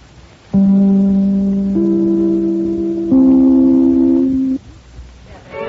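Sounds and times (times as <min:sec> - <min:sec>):
network chimes: 0:00.6 - 0:04.6.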